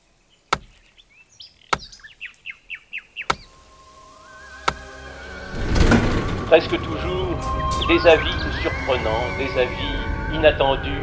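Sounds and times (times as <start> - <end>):
chopping wood: 0.5 - 0.9, 1.7 - 2.1, 3.2 - 3.6, 4.6 - 5.0
speech: 6.5 - 11.0.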